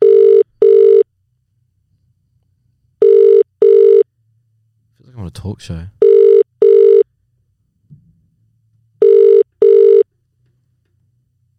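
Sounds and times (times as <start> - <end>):
double-beep phone ring-back tone: 0.0 - 1.1, 3.0 - 4.0, 6.0 - 7.0, 9.0 - 10.1
speech: 5.3 - 6.0.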